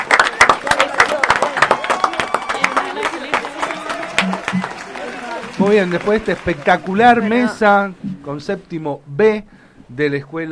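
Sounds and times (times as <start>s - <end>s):
audience applause: 0.0s - 7.7s
speech: 5.6s - 10.4s.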